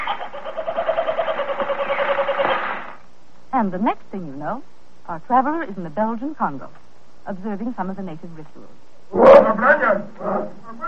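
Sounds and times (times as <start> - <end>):
kookaburra call: 0.0 - 3.0, 9.2 - 10.8
speech: 3.6 - 10.8.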